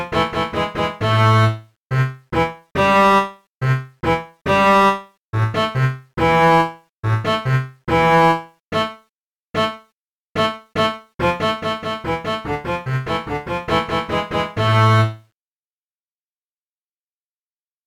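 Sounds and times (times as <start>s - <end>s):
contrabass: 0.0s - 8.9s, 10.4s - 15.2s.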